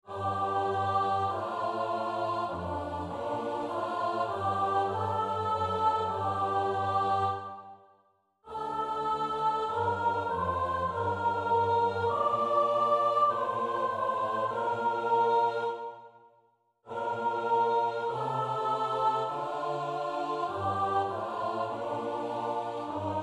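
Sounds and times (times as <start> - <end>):
four-part SATB choir singing a psalm: 0.0 - 23.2.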